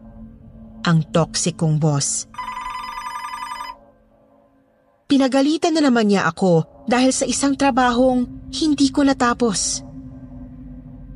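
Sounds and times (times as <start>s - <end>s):
speech: 0.9s - 2.5s, 5.2s - 9.9s
telephone ringing electronically: 2.3s - 3.8s.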